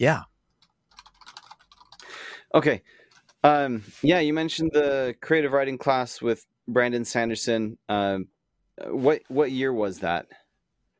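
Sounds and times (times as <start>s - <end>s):
speech: 0.0s - 0.3s, 2.5s - 10.4s
typing on a computer keyboard while taking a note: 0.6s - 2.1s, 3.1s - 3.4s.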